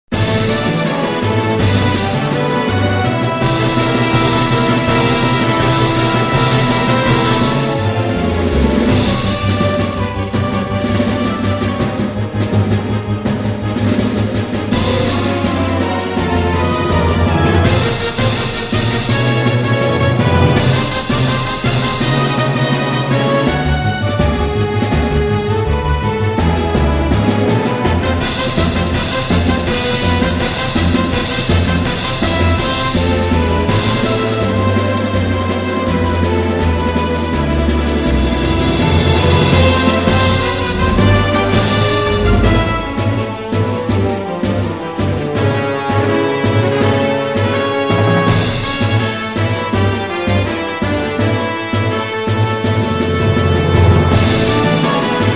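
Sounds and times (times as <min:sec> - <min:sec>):
orchestral music: 0:00.0 - 0:55.3.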